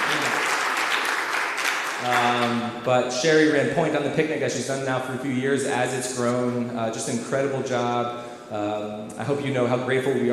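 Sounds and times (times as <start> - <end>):
crowd applauding for volunteer: 0.0 - 2.7
speech: 2.0 - 10.3.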